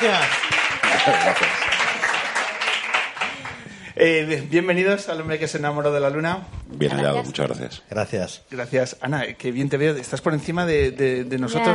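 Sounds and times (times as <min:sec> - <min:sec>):
speech: 0:00.0 - 0:01.8, 0:04.0 - 0:11.7
audience applause: 0:00.0 - 0:03.8.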